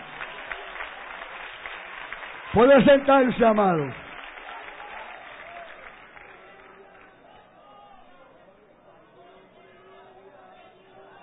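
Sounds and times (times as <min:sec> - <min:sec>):
audience applauding: 0:00.0 - 0:07.5
speech: 0:02.6 - 0:04.0.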